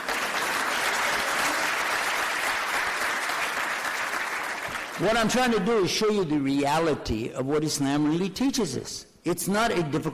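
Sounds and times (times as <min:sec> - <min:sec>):
audience clapping: 0:00.0 - 0:05.6
speech: 0:05.0 - 0:10.1.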